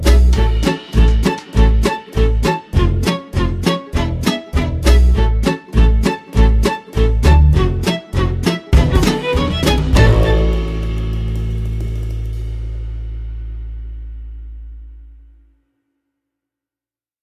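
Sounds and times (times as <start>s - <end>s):
swing backing track without lead: 0.0s - 13.2s.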